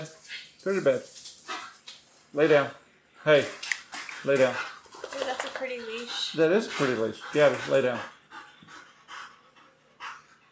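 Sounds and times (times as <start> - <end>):
speech: 0.0 - 1.2, 2.3 - 3.6, 4.2 - 4.7, 5.6 - 8.2
excited dog panting: 3.9 - 10.5.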